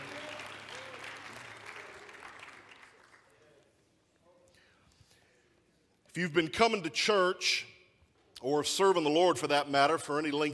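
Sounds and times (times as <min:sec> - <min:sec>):
audience clapping hands in praise: 0:00.0 - 0:03.8
speech: 0:06.2 - 0:07.7, 0:08.4 - 0:10.5.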